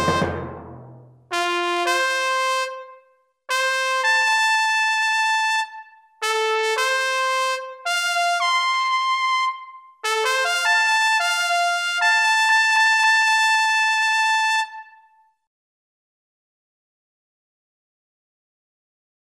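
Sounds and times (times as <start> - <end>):
drums: 0.0 - 1.2
trumpets: 0.0 - 15.0.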